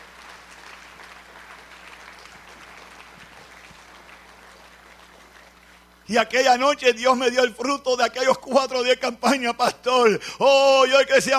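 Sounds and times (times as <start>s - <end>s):
audience applause: 0.0s - 6.0s
speech: 6.1s - 11.3s.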